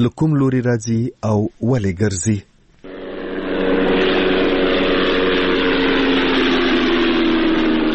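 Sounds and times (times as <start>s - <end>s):
speech: 0.0s - 2.5s
unmanned drone engine over Ghazni province, Afghanistan: 2.8s - 7.9s.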